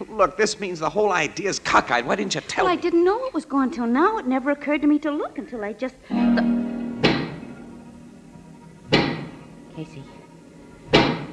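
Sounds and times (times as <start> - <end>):
speech: 0.2 - 6.5, 9.9 - 10.2
giant pick knocking: 7.0 - 7.4, 8.9 - 9.4, 10.9 - 11.3.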